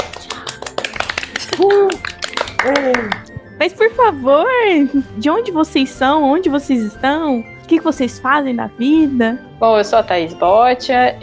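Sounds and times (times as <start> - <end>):
round of applause: 0.0 - 3.3
speech: 1.6 - 11.2.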